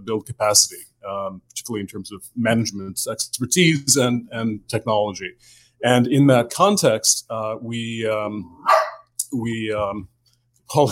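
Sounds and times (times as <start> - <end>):
speech: 0.0 - 10.1, 10.7 - 10.8
household dog yelping: 8.6 - 9.1
household dogs barking: 8.6 - 9.2.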